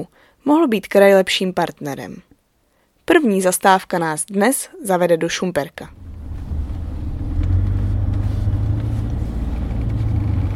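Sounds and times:
speech: 0:00.0 - 0:02.3, 0:03.1 - 0:06.0
car driving with deep engine rumble: 0:05.9 - 0:10.5.

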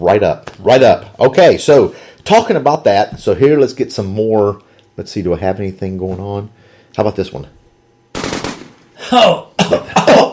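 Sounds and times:
speech: 0:00.0 - 0:07.6, 0:09.1 - 0:09.8
gunshots in a double tap to the head: 0:08.1 - 0:08.8.

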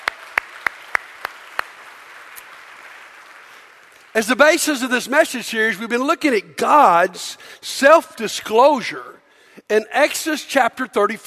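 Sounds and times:
church congregation clapping to welcome a softball team: 0:00.0 - 0:04.1
speech: 0:04.2 - 0:11.2.

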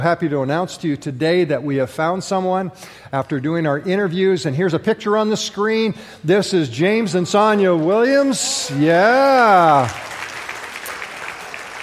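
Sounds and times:
speech: 0:00.0 - 0:10.1
audience applause: 0:07.3 - 0:11.8.

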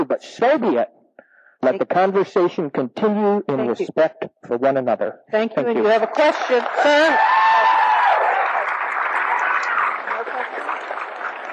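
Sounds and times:
speech: 0:00.0 - 0:01.0, 0:01.6 - 0:07.6
audience applause: 0:05.9 - 0:11.5.

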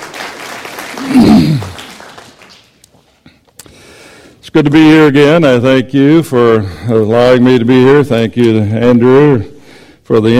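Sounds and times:
audience clapping: 0:00.0 - 0:03.0
speech: 0:04.6 - 0:09.5, 0:10.1 - 0:10.3.

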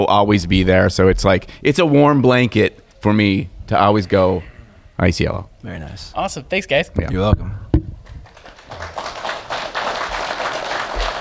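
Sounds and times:
speech: 0:00.0 - 0:07.6
audience clapping at a question-and-answer session: 0:08.0 - 0:11.2.

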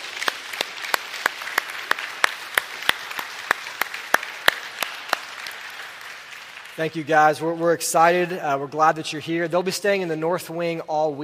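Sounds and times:
group applauding: 0:00.0 - 0:08.2
speech: 0:06.8 - 0:11.2.

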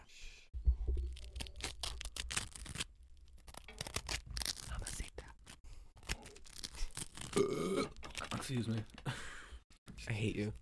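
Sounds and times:
buttering crunchy bread: 0:00.9 - 0:08.9
speech: 0:07.4 - 0:09.2, 0:10.0 - 0:10.6.

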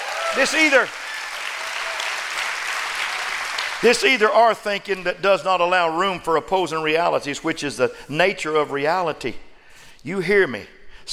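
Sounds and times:
audience clapping hands: 0:00.0 - 0:04.5
speech: 0:00.4 - 0:01.0, 0:03.8 - 0:11.1.

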